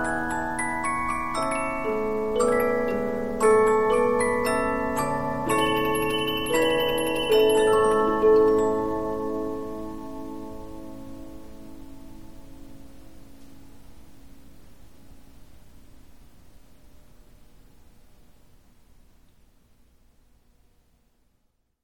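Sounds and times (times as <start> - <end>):
Polyphon 15-inch disc music box playing: 0.0 - 10.8.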